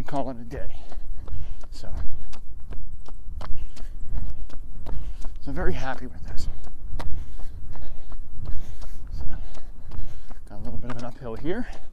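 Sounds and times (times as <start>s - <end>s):
footsteps of a person walking briskly: 0.0s - 11.9s
speech: 0.1s - 1.0s, 1.7s - 2.4s, 5.5s - 6.5s, 10.6s - 11.9s.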